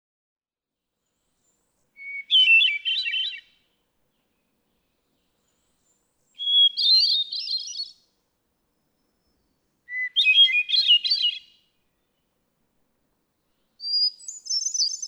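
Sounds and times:
hermit thrush singing: 1.4 - 3.6, 5.2 - 8.1, 9.0 - 12.3, 13.8 - 15.0.

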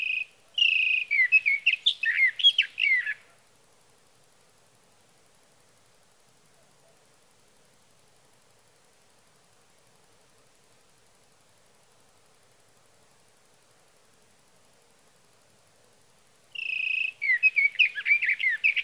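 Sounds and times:
sage thrasher: 0.0 - 3.2, 16.6 - 18.8.

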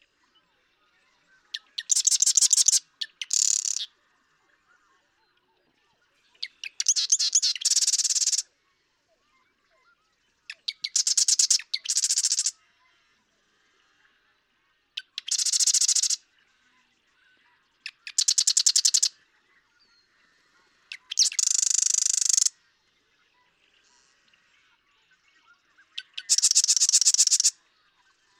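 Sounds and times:
Marsh Wren song: 1.6 - 3.9, 6.4 - 8.4, 10.7 - 12.5, 15.0 - 16.2, 17.9 - 19.1, 21.0 - 22.5, 26.0 - 27.5.

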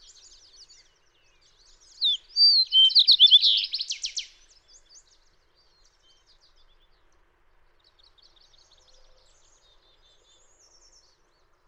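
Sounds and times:
fox sparrow singing: 1.7 - 4.4.

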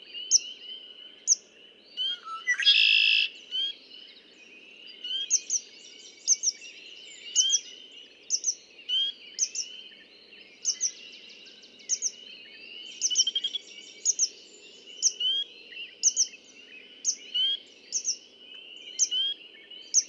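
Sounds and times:
chorus of other birds chirping: 1.2 - 20.0.

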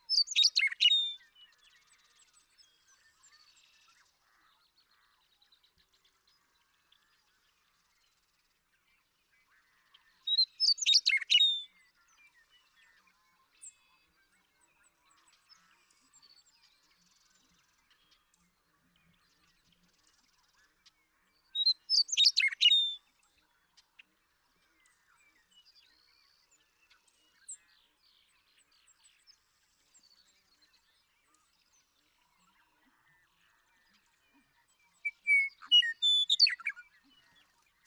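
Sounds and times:
western meadowlark song: 0.0 - 4.0, 10.2 - 37.8
faint bird chirps: 0.0 - 37.8.

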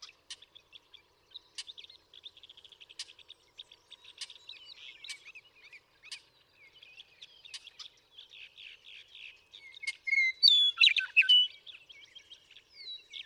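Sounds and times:
western meadowlark singing: 0.0 - 13.2.

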